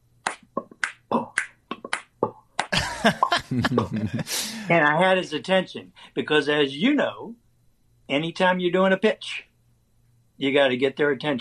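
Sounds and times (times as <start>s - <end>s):
finger snaps: 0.2s - 2.8s
laughter: 2.8s - 4.7s
speech: 3.0s - 7.4s, 8.1s - 9.5s, 10.4s - 11.3s.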